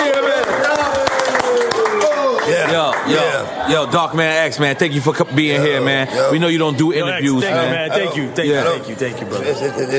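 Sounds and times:
audience clapping hands: 0.0s - 3.5s
speech: 3.1s - 9.9s.

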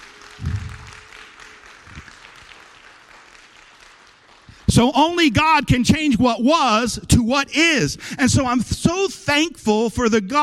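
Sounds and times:
audience applause: 0.0s - 4.7s
speech: 4.7s - 10.4s.

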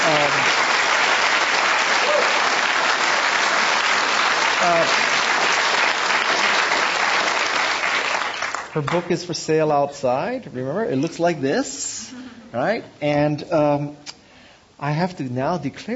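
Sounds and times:
audience applause: 0.0s - 9.2s
speech: 8.8s - 14.1s, 14.8s - 15.9s.

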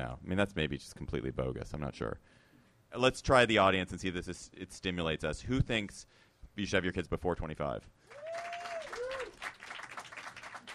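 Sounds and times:
speech: 0.0s - 8.5s
audience clapping: 8.1s - 10.7s.

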